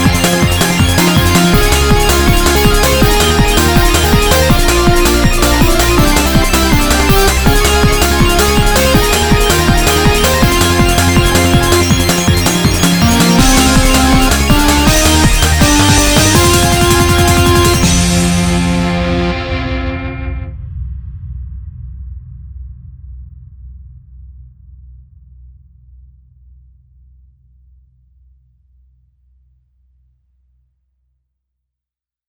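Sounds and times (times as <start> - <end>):
off vocal instrumental music: 0.0 - 20.4.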